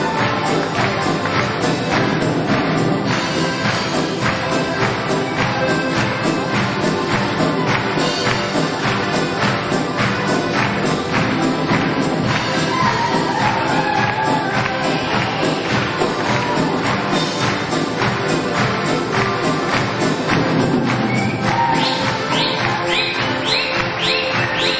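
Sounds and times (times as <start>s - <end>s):
trumpet: 0.0s - 24.7s.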